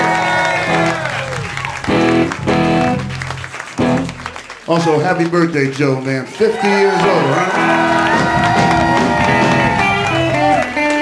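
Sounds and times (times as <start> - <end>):
audience applause: 0.0 - 11.0
speech: 4.7 - 7.9.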